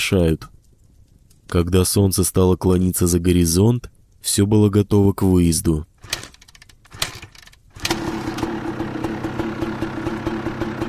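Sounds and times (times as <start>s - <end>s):
speech: 0.0s - 0.5s, 1.5s - 6.2s
faint mechanical clicks and rattles: 6.0s - 8.0s
motorcycle engine starting and idling: 6.1s - 10.8s.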